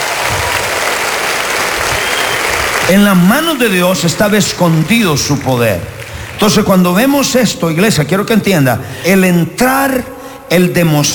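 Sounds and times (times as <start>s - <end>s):
congregation applause at a church service: 0.0s - 7.6s
speech: 2.9s - 11.1s.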